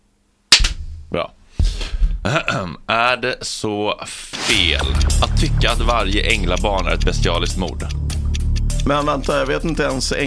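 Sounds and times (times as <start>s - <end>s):
single hand clap: 0.5s - 0.8s
speech: 1.1s - 1.7s, 2.3s - 8.0s, 8.8s - 10.2s.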